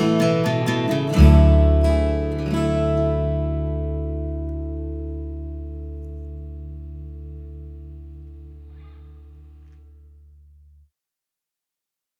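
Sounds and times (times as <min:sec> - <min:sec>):
folk score music: 0:00.0 - 0:06.9.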